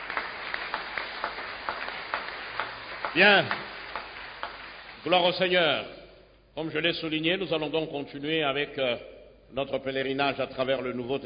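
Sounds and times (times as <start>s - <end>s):
church congregation clapping in praise of the word of the Lord: 0.0s - 5.7s
soft hiss: 0.0s - 11.2s
speech: 3.1s - 3.6s, 5.0s - 6.0s, 6.6s - 11.2s.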